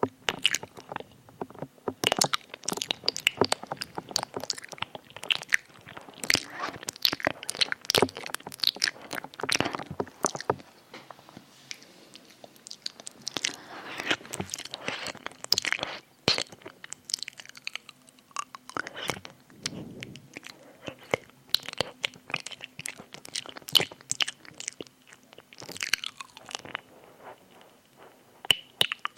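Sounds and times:
wet clicks smacks and crunchy bites of ear eating mouth sounds: 0:00.0 - 0:10.7, 0:11.7 - 0:29.1
faint low steady hum: 0:00.0 - 0:29.1.

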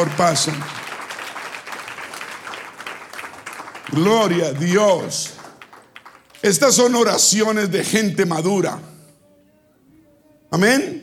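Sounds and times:
speech: 0:00.0 - 0:00.8, 0:03.9 - 0:05.4, 0:06.4 - 0:08.9, 0:10.5 - 0:11.0
audience applauding: 0:00.0 - 0:07.1.

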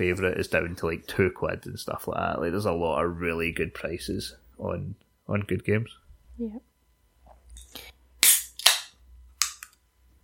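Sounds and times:
speech: 0:00.0 - 0:06.7
Pepsi can being opened: 0:07.6 - 0:09.8.

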